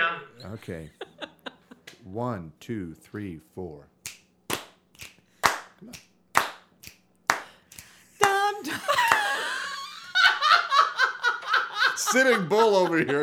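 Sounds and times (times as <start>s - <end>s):
laughter: 0.1s - 2.0s, 8.6s - 13.2s
speech: 0.2s - 1.0s, 2.0s - 4.0s, 5.8s - 6.1s, 12.1s - 13.2s
hand clapping: 4.0s - 9.4s.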